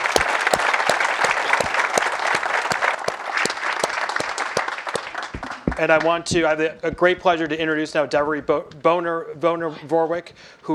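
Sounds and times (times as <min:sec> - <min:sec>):
audience applause: 0:00.0 - 0:06.2
speech: 0:05.8 - 0:10.7.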